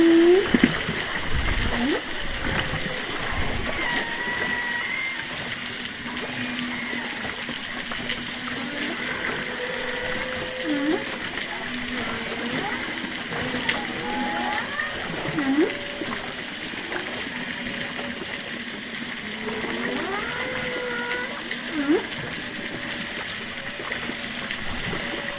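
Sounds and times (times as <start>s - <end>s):
choppy water movement: 0.0s - 25.3s
distant humpback whales underwater off east Australia: 0.0s - 25.3s.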